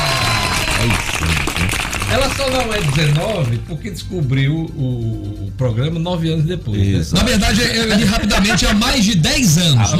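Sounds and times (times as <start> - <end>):
applause: 0.0 - 3.5
speech: 2.2 - 9.9.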